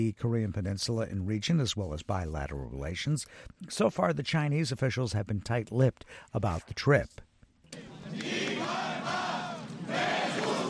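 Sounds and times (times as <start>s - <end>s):
speech: 0.0s - 8.4s
protesting firefighters shouting slogans: 7.8s - 10.6s.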